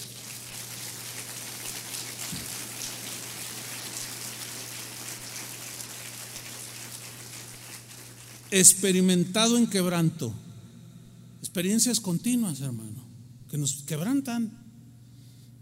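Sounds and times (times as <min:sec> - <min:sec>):
audience applauding: 0:00.0 - 0:08.7
speech: 0:08.5 - 0:10.4, 0:11.6 - 0:14.6.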